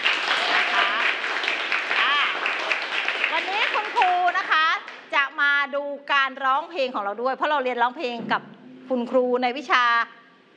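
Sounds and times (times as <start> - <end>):
applause: 0.0 - 5.1
speech: 6.6 - 10.2.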